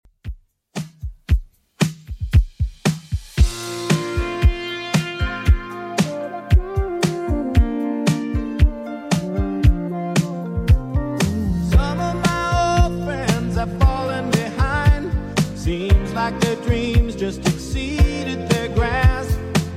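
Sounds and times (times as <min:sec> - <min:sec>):
1980s style music at 115 bpm: 0:00.2 - 0:19.7.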